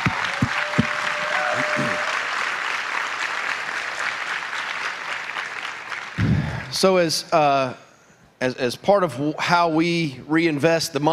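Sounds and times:
audience applause at a gathering: 0:00.0 - 0:06.7
speech: 0:06.7 - 0:07.8, 0:08.4 - 0:11.1.

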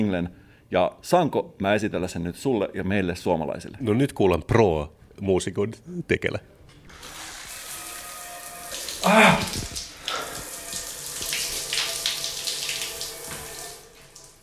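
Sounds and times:
speech: 0:00.0 - 0:06.6
shower running: 0:06.9 - 0:14.4
water splashing: 0:08.5 - 0:14.4.

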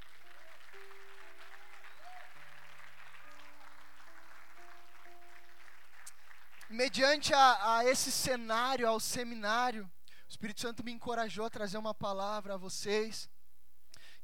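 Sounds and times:
audience clapping: 0:00.0 - 0:08.2
speech: 0:06.7 - 0:13.3.

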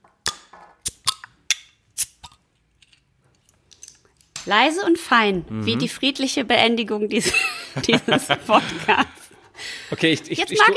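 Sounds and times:
non-alcoholic beer bottle being opened: 0:00.3 - 0:02.4
speech: 0:04.4 - 0:09.3, 0:09.9 - 0:10.7
laughter: 0:07.2 - 0:10.7.

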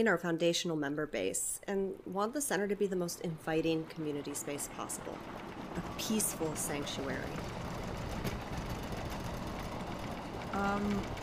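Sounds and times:
speech: 0:00.0 - 0:07.6, 0:10.6 - 0:11.2
train passing by the window: 0:03.0 - 0:11.2.

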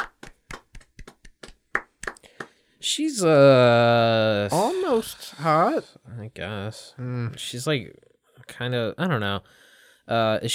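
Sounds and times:
sparse clapping from a few pairs of hands: 0:00.0 - 0:02.6
speech: 0:02.8 - 0:10.5.

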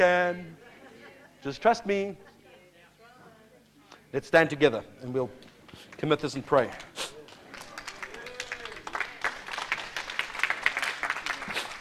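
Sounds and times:
speech: 0:00.0 - 0:00.6, 0:01.4 - 0:02.3, 0:04.1 - 0:06.9
subdued audience clapping: 0:05.4 - 0:11.7.

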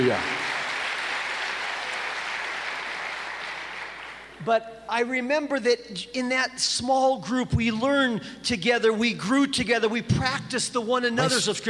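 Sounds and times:
speech: 0:00.0 - 0:00.4, 0:04.4 - 0:11.6
audience applause: 0:00.0 - 0:04.4.

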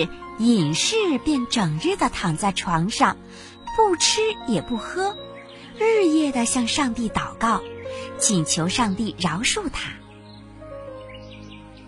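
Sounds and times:
speech: 0:00.0 - 0:10.0
small bird singing in a tree: 0:00.0 - 0:11.8.

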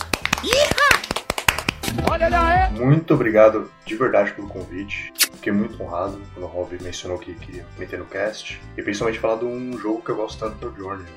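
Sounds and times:
people clapping: 0:00.0 - 0:02.2
speech: 0:00.4 - 0:00.9, 0:02.1 - 0:11.1.

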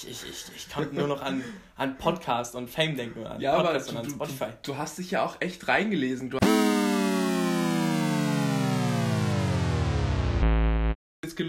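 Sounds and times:
speech: 0:00.0 - 0:06.6, 0:11.3 - 0:11.4
game over sound effect: 0:06.4 - 0:11.0.

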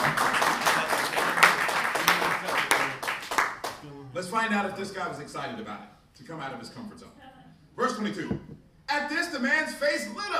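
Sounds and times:
audience clapping: 0:00.0 - 0:03.8
speech: 0:04.4 - 0:07.2, 0:07.8 - 0:10.3.

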